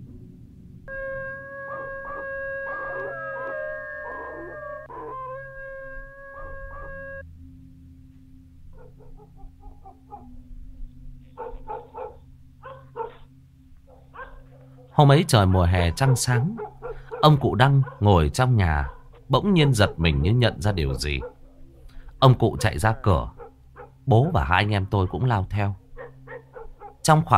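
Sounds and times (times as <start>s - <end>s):
dogs howling outside the gate: 0.9s - 7.2s, 8.7s - 10.4s, 11.3s - 13.3s, 13.9s - 21.8s, 22.4s - 24.1s, 25.9s - 27.1s
speech: 15.0s - 21.3s, 22.2s - 23.4s, 24.0s - 25.8s, 27.1s - 27.3s.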